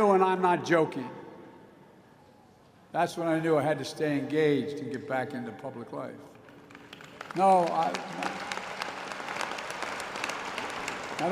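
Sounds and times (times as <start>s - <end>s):
speech: 0.0s - 1.2s, 2.9s - 6.4s, 7.3s - 8.6s
audience applause at a Howard University commencement ceremony: 6.4s - 11.3s.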